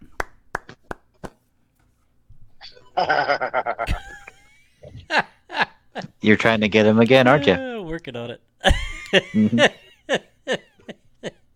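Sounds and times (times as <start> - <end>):
sharp crisp hand claps: 0.0 - 1.5
burst of chuckling laughter: 2.6 - 6.5, 8.6 - 11.5
speech: 3.0 - 4.0, 6.2 - 9.7.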